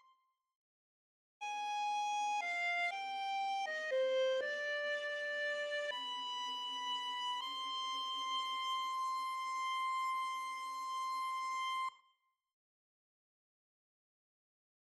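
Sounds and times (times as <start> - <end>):
violin: 1.4 - 12.0.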